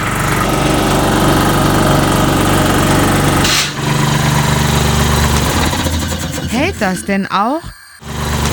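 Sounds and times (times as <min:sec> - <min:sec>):
compressed-air tool running: 0:00.0 - 0:07.0, 0:08.0 - 0:08.5
compressed-air hissing: 0:02.1 - 0:08.5
speech: 0:06.8 - 0:08.2.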